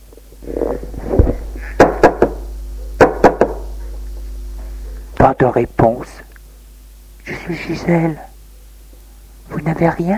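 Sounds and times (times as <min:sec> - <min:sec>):
firm knocks on a closed door: 0:01.8 - 0:02.4, 0:03.0 - 0:03.6
speech: 0:05.3 - 0:06.3, 0:07.5 - 0:08.3, 0:09.6 - 0:10.1.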